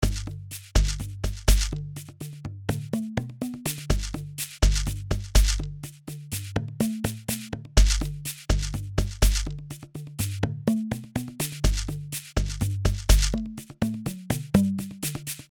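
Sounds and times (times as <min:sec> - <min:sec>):
shekeres shaking: 0:00.0 - 0:01.8, 0:03.7 - 0:05.7, 0:06.4 - 0:10.3, 0:11.3 - 0:15.5
PVC pipe percussion: 0:00.0 - 0:15.5.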